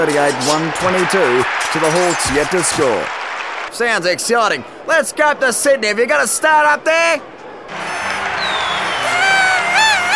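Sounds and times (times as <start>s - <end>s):
lively party crowd cheering: 0.0s - 3.8s, 7.7s - 10.1s
speech: 0.0s - 7.9s
high whoops and shrill rising shouts: 7.8s - 10.1s.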